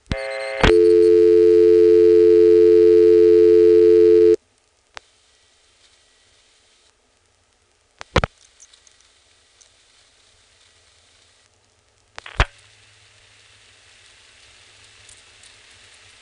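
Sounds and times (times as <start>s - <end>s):
telephone exchange register sender steady tone responding to dialing: 0.1s - 4.4s.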